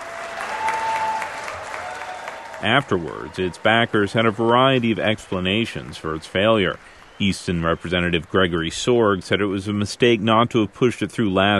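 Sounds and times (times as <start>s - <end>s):
state House members applauding after a bill is voted down: 0.0s - 10.4s
speech: 2.6s - 11.5s.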